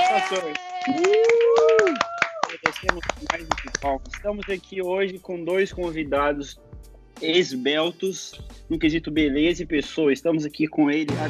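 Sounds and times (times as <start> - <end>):
hand clapping: 0.0 - 4.7
speech: 0.2 - 1.6, 2.8 - 6.6, 7.2 - 11.2.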